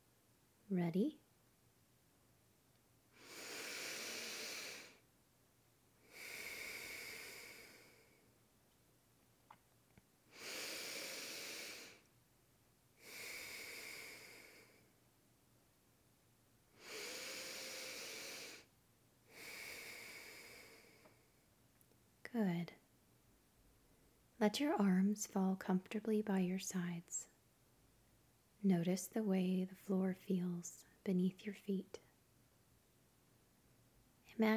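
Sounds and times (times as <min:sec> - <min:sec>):
speech: 0:00.7 - 0:01.2, 0:24.4 - 0:27.3, 0:28.6 - 0:32.0, 0:34.4 - 0:34.5
slow deep breaths: 0:03.1 - 0:05.0, 0:06.0 - 0:08.3, 0:10.3 - 0:12.1, 0:13.0 - 0:14.9, 0:16.7 - 0:18.7, 0:19.3 - 0:21.4.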